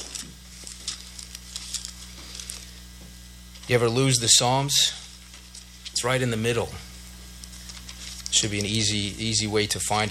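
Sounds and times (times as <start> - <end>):
pages of books being turned: 0.0 - 2.8, 7.4 - 8.9
steady low hum: 0.0 - 10.1
speech: 3.7 - 5.0, 6.0 - 6.9, 8.4 - 10.1.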